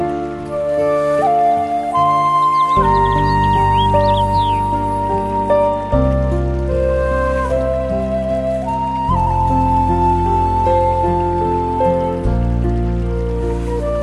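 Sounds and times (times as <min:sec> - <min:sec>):
Japanese music: 0:00.0 - 0:14.0
stream flowing: 0:00.0 - 0:14.0
birds: 0:02.1 - 0:05.6.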